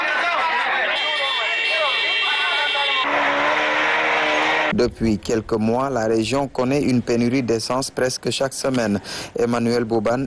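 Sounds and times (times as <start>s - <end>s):
crowd hubbub: 0.0s - 4.8s
shrill sustained car horn blasts: 0.7s - 4.8s
speech: 4.8s - 10.2s.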